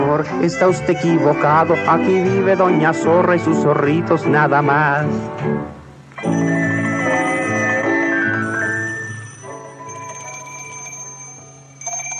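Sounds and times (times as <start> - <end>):
speech: 0.1 - 6.7
telephone ringing: 6.0 - 12.1.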